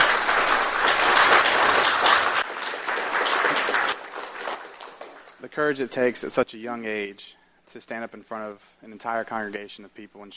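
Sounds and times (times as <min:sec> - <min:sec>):
applause from a sizable crowd: 0:00.0 - 0:05.4
speech: 0:05.6 - 0:10.3.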